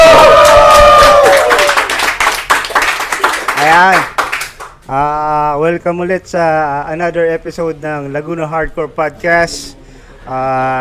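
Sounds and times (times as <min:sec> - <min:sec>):
high sustained whoop: 0:00.0 - 0:01.9
applause: 0:00.0 - 0:04.8
speech: 0:05.7 - 0:10.7.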